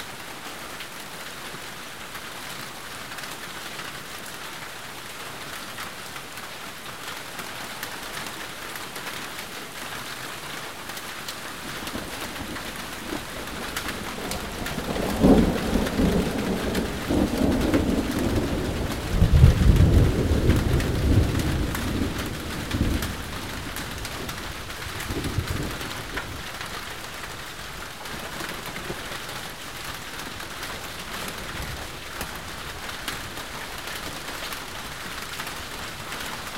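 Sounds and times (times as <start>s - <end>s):
rain: 0.0s - 36.5s
thunder: 12.4s - 26.4s.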